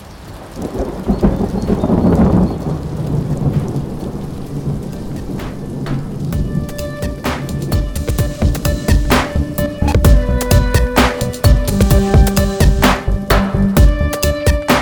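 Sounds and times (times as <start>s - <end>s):
raindrops pattering on surfaces: 0.0s - 8.6s
heavy rain: 0.0s - 14.7s
thunder rumbling: 0.3s - 14.1s.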